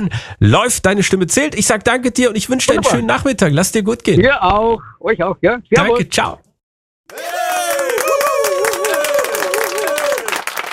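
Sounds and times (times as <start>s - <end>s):
speech: 0.0s - 6.5s
crowd applause and cheering: 7.1s - 10.7s.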